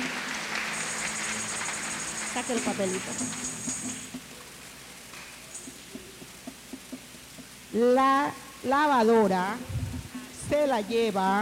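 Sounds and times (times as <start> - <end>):
audience applause: 0.0 - 4.2
speech: 2.4 - 3.7, 7.8 - 9.7, 10.5 - 11.4.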